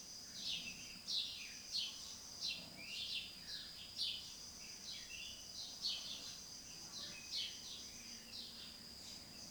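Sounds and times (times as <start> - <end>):
dawn garden ambience in Anamur: 0.0 - 9.4.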